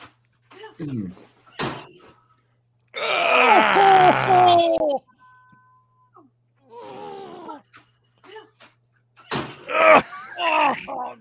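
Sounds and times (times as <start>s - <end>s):
person yelling in pain: 3.0s - 5.0s, 9.7s - 11.2s.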